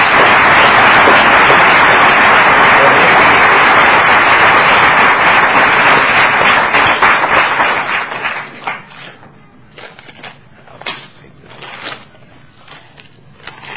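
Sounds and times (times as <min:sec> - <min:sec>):
audience applause: 0:00.0 - 0:08.9.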